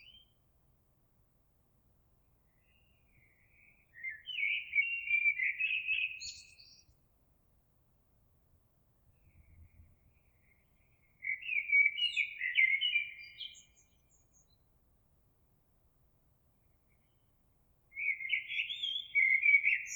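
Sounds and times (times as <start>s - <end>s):
blackbird: 0.0s - 0.4s, 2.5s - 7.0s, 9.1s - 14.6s, 17.9s - 19.9s.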